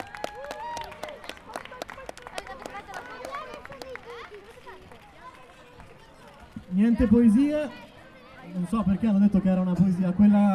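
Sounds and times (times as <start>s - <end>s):
audience applause: 0.0s - 8.4s
cheering voices and chatter: 0.0s - 10.5s
speech: 6.8s - 7.9s, 8.6s - 10.5s.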